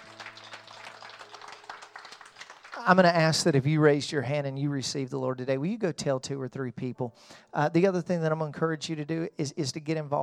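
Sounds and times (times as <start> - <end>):
church congregation clapping after a prayer of commitment: 0.0 - 3.6
speech: 2.8 - 10.2.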